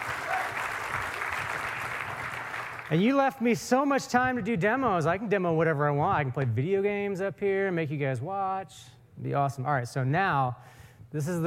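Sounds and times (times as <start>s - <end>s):
audience applause at a tech talk: 0.0s - 3.0s
speech: 2.9s - 11.4s.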